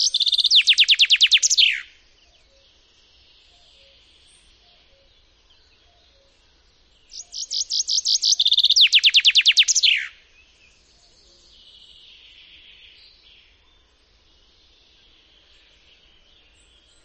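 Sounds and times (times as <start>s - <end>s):
Common chaffinch singing: 0.0s - 17.0s.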